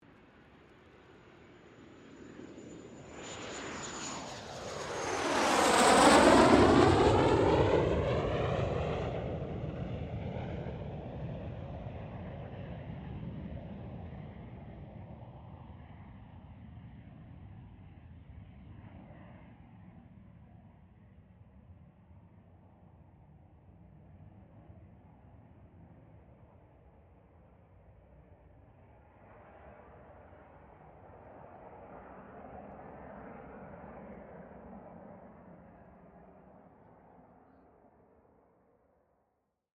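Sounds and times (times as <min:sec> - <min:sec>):
CA-27 Sabre jet aircraft passing: 0:01.8 - 0:11.4.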